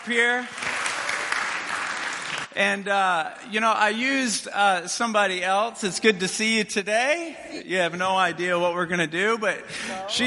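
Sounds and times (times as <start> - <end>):
audience applause: 0.0 - 2.6
speech: 0.1 - 0.7, 2.6 - 10.2.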